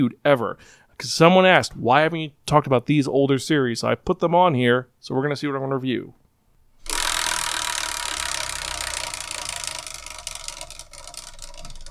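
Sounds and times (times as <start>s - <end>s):
speech: 0.0s - 6.2s
giant homemade Wheel of Fortune spinning with rattling clatter: 6.8s - 11.8s.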